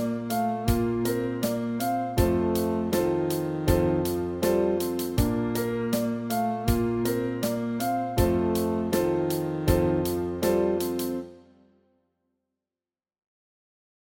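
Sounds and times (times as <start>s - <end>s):
saxophone study: 0.0s - 11.3s.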